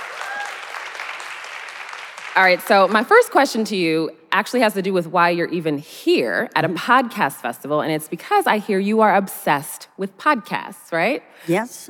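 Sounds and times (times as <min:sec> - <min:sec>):
audience round of applause: 0:00.0 - 0:02.6
speech: 0:02.4 - 0:11.8.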